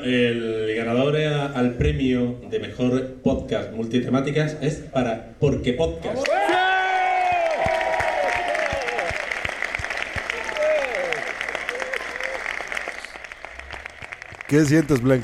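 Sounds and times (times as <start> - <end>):
speech: 0.0 - 6.6, 14.5 - 15.2
excited cheers and high-pitched whoops: 6.2 - 9.3, 10.2 - 12.7
loud sustained audience applause: 6.2 - 15.2.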